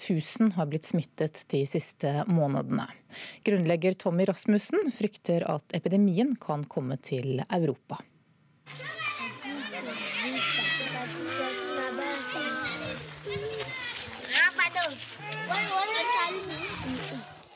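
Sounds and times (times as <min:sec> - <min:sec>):
speech: 0:00.1 - 0:08.1
children playing and shouting: 0:08.6 - 0:17.5.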